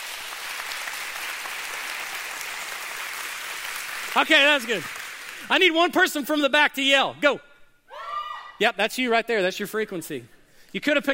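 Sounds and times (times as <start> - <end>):
audience clapping loudly: 0.0 - 5.8
speech: 4.1 - 7.5, 8.6 - 11.1.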